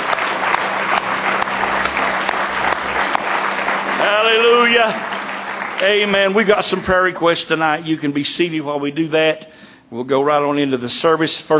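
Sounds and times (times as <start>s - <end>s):
low hum: 0.0s - 7.0s
audience hand clapping: 0.0s - 7.8s
speech: 4.3s - 5.1s, 5.8s - 11.5s.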